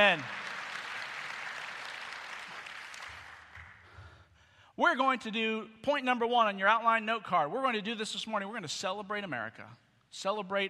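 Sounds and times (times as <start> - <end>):
speech: 0.0 - 0.4, 4.8 - 10.6
audience clapping: 0.0 - 4.2.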